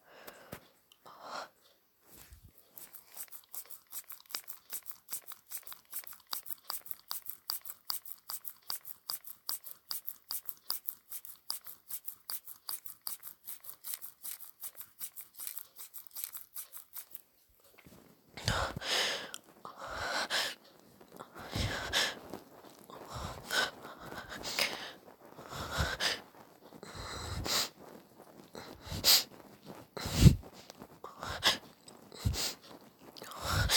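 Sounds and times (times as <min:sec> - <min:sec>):
person breathing heavily, quiet and nervous: 0:00.0 - 0:01.7, 0:18.4 - 0:29.3, 0:30.0 - 0:33.7
wet noises: 0:02.2 - 0:33.7.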